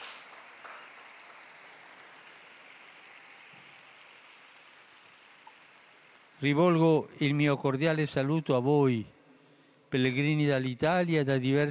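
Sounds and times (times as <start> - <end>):
crowd applauding: 0.0 - 6.6
speech: 6.4 - 9.1, 9.9 - 11.6.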